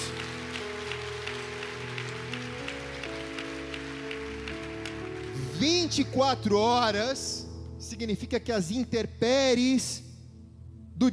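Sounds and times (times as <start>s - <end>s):
applause: 0.0s - 6.0s
speech: 5.6s - 10.0s, 11.0s - 11.1s.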